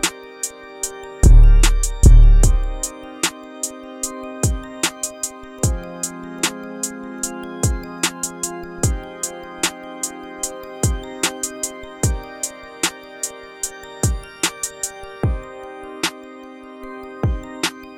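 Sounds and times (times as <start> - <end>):
lo-fi Brazilian funk type beat: 1.2 - 3.7, 4.4 - 6.9, 7.6 - 9.8, 10.8 - 13.3, 14.0 - 16.2, 17.2 - 17.9.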